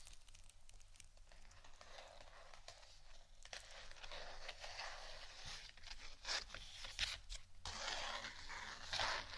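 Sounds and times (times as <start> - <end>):
papery scratching: 1.3 - 9.3.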